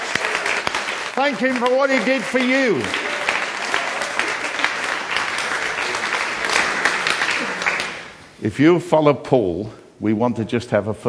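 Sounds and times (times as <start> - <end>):
audience applauding: 0.0 - 8.2
speech: 1.2 - 3.0, 8.4 - 11.0.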